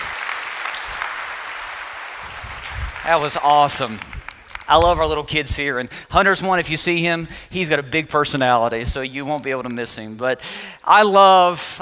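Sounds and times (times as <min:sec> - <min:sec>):
audience applause: 0:00.0 - 0:04.9
speech: 0:03.1 - 0:04.1, 0:04.7 - 0:11.7.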